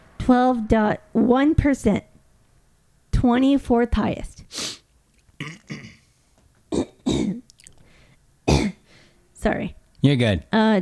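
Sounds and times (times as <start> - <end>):
speech: 0.3 - 2.1, 3.2 - 4.4, 9.4 - 10.8
throat clearing from a dry throat: 5.4 - 6.1, 6.7 - 7.4.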